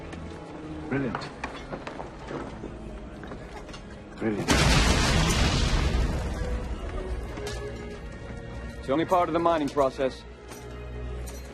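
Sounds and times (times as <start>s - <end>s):
speech: 0.9s - 2.8s, 4.2s - 4.9s, 8.9s - 10.3s
blasting explosion in a mine: 4.5s - 7.0s.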